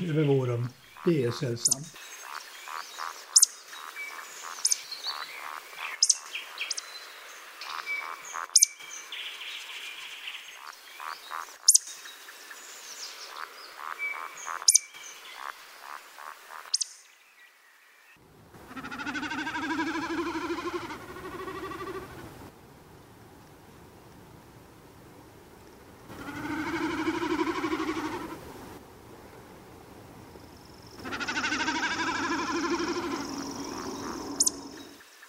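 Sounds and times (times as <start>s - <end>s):
speech: 0.0s - 2.1s
dense chorus of frogs trilling and croaking: 0.0s - 16.9s, 18.6s - 22.4s, 26.1s - 28.4s, 30.4s - 35.2s.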